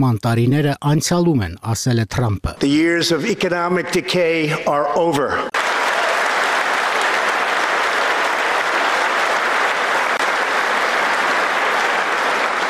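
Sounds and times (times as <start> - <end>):
speech: 0.0 - 5.6
Republican legislators applauding Donald Trump's address: 5.5 - 12.6.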